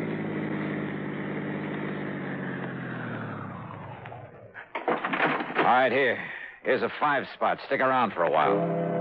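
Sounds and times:
taxi engine pulling over and idling: 0.0s - 4.6s
sharp clicks and knocks: 4.7s - 5.8s
speech: 5.7s - 8.9s.

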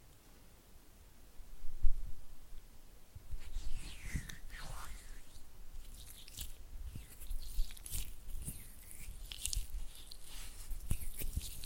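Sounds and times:
oily hands squelching and rubbing: 3.5s - 11.6s
crisp clicks: 4.1s - 11.6s.

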